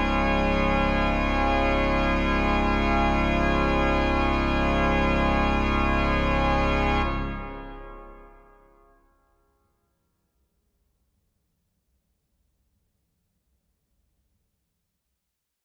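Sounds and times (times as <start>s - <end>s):
organ postlude in C minor: 0.0s - 8.5s.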